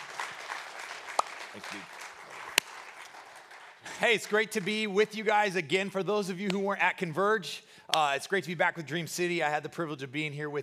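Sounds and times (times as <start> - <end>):
audience applause welcoming a guest pastor during a church service: 0.0 - 4.8
speech: 1.6 - 2.0, 3.8 - 10.6.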